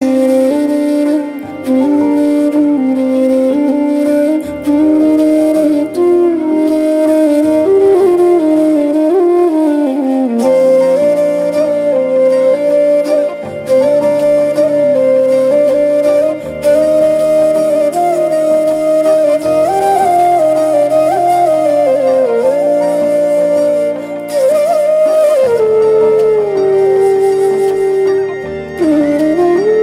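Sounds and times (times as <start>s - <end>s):
flute instrumental ringtone: 0.0s - 29.8s.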